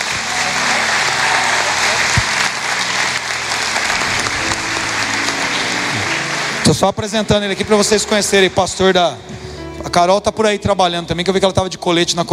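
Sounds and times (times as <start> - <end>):
audience applause: 0.0 - 9.2
faint voices and cheers: 0.0 - 9.2
speech: 6.7 - 9.4, 10.0 - 12.3.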